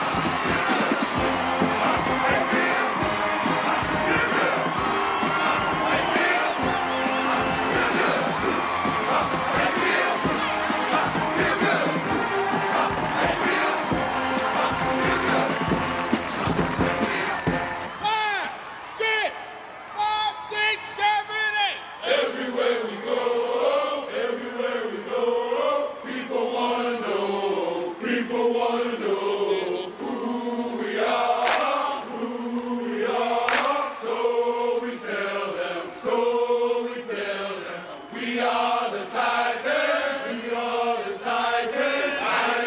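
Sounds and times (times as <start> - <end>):
stadium crowd cheering: 0.0 - 42.6.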